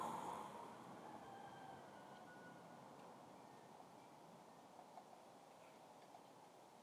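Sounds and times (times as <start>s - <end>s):
Estonian rooster crowing: 0.2s - 3.9s.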